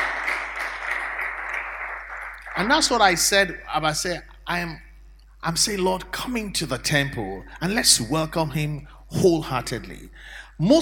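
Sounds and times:
audience clapping half-heartedly: 0.0s - 3.3s
speech: 2.6s - 4.8s, 5.4s - 10.8s.

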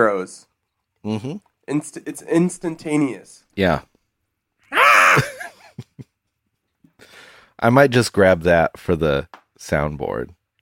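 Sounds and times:
speech: 0.0s - 3.9s, 4.7s - 5.4s, 7.6s - 10.4s
person screaming: 4.7s - 5.5s.

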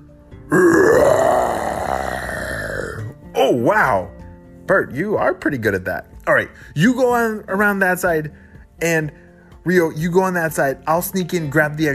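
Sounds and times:
person imitating a dinosaur roar: 0.5s - 3.2s
speech: 3.5s - 4.1s, 4.7s - 11.9s.

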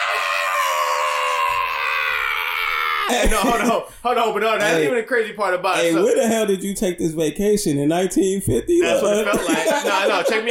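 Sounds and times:
person imitating a woman screaming: 0.0s - 3.6s
laughter: 3.1s - 3.9s, 8.7s - 10.4s
speech: 3.1s - 10.4s.

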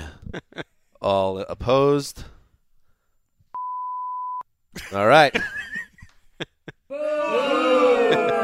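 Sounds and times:
laughter: 0.2s - 0.7s, 4.7s - 8.4s
speech: 1.5s - 2.3s, 4.9s - 5.5s
audience booing: 6.9s - 8.4s.

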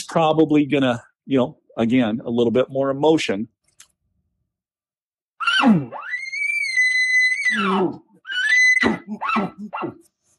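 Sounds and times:
speech: 0.1s - 3.6s, 5.6s - 6.0s, 7.5s - 8.0s, 8.8s - 10.1s
person imitating an elk bugle: 5.4s - 10.0s.

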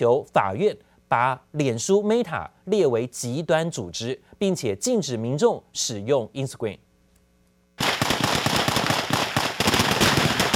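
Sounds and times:
speech: 0.0s - 6.9s
rapid gunfire from a handheld long gun: 7.8s - 10.5s.

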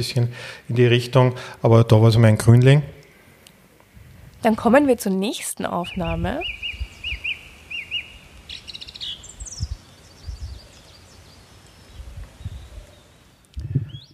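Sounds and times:
speech: 0.0s - 3.0s, 4.4s - 6.7s
chaffinch singing: 4.4s - 14.1s
song thrush singing: 5.6s - 14.1s.

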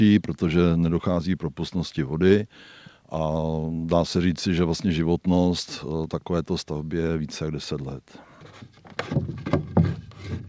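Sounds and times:
speech: 0.0s - 9.3s
wooden barn gate knocking and rattling: 8.4s - 10.4s.

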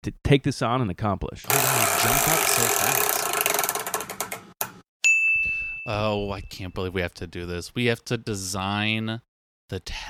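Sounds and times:
speech: 0.0s - 3.2s, 5.9s - 10.0s
prize wheel spinning and clicking: 1.4s - 4.6s.

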